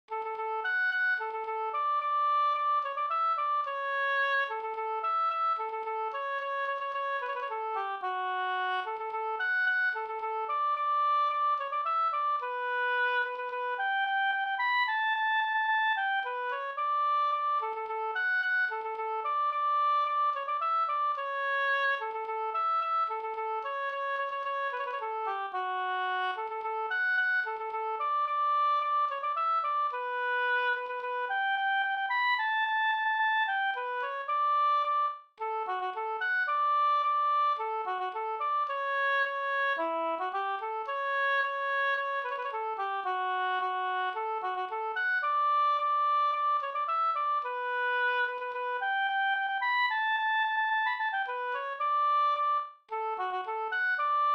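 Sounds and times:
polka music: 0.1s - 54.3s.

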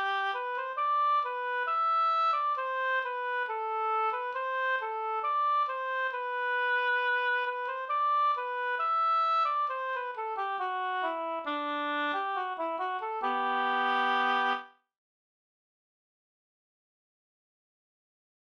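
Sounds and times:
folk tune in G major: 0.0s - 14.7s.

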